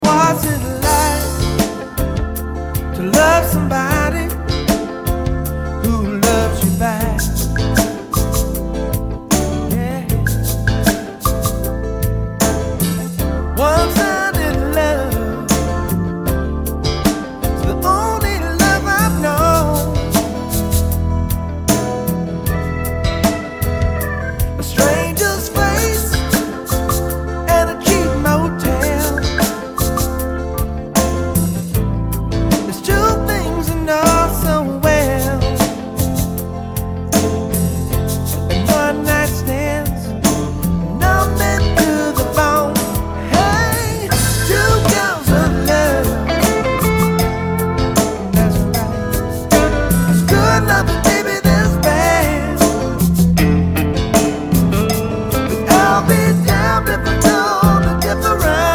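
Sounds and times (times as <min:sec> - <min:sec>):
pop percussion overdub: 0:00.0 - 0:58.7.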